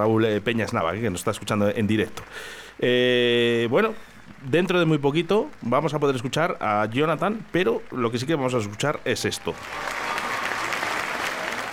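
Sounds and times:
speech: 0.0 - 10.0
audience applause: 4.6 - 11.7.

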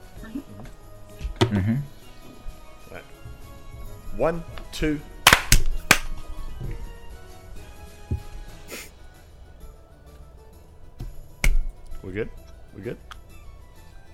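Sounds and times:
speech: 1.6 - 1.9, 4.2 - 5.1, 12.2 - 13.1
hand claps for a clap test: 5.3 - 6.1.

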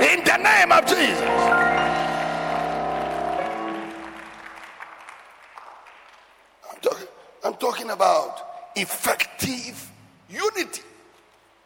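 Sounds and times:
speech: 0.3 - 1.7, 7.8 - 10.9
people clapping: 0.8 - 6.6.

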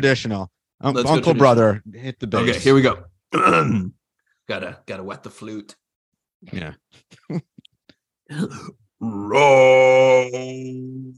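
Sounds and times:
speech: 0.0 - 5.8, 6.4 - 7.5, 8.3 - 11.1
person imitating a roar: 8.3 - 11.1.

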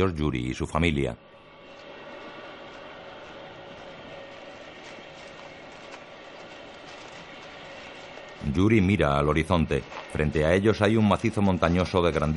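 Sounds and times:
speech: 0.0 - 1.4, 8.5 - 12.3
passenger train standing still rumbling and humming: 1.1 - 12.3.

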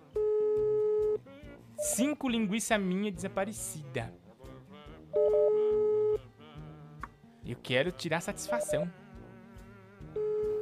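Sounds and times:
steady telephone tone from an unanswered call: 0.1 - 1.2, 1.8 - 2.0, 5.2 - 6.2, 8.5 - 8.9, 10.2 - 10.6
speech: 1.8 - 4.2, 7.6 - 9.0.

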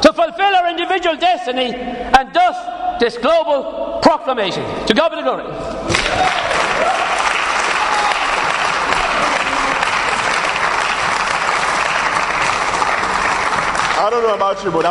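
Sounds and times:
speech: 0.7 - 6.5, 14.0 - 14.8
round of applause: 5.9 - 14.8.

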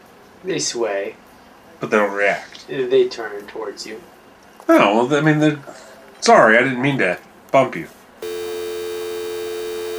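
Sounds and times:
speech: 0.4 - 1.2, 1.8 - 8.0
dead dial tone from a phone emitter: 8.2 - 9.9.

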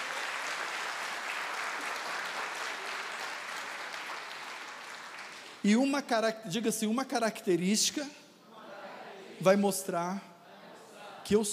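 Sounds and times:
audience applause: 0.0 - 5.6
speech: 5.6 - 8.2, 9.4 - 10.3, 11.3 - 11.5.

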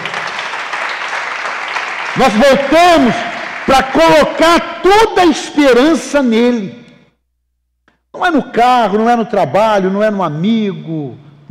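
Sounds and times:
audience applause: 0.0 - 4.0
speech: 2.2 - 6.8, 8.2 - 11.4.

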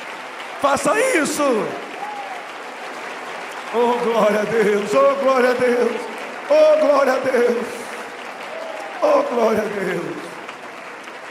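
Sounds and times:
audience applauding: 0.0 - 11.2
speech: 0.6 - 1.9, 3.7 - 7.8, 9.0 - 10.2.

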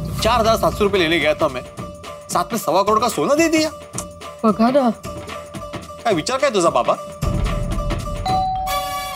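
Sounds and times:
speech: 0.2 - 1.8, 2.3 - 5.2, 6.0 - 7.1
electronic doorbell chiming: 8.2 - 9.0.

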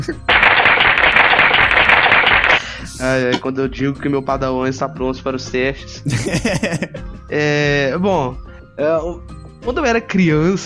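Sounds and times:
speech: 0.0 - 0.4, 2.8 - 10.6
applause clapping: 0.3 - 3.4
laughter: 6.1 - 7.0.

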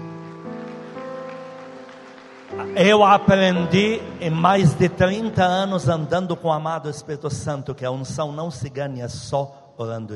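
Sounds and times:
audience applauding: 0.0 - 5.7
sustained keyboard chords: 0.0 - 7.7
speech: 2.6 - 10.1.

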